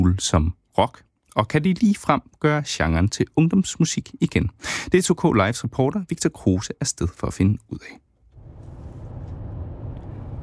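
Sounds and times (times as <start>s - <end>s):
speech: 0.0s - 8.1s
car driving on the road from DR-byen toward Kirke Hyllinge, heard from inside: 8.2s - 10.4s.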